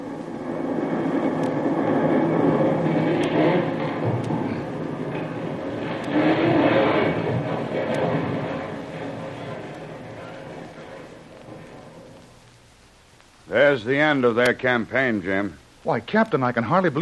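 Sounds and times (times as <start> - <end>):
tremendous explosion: 0.0 - 12.4
rumbling reverberations: 0.0 - 12.9
speech: 13.7 - 16.9.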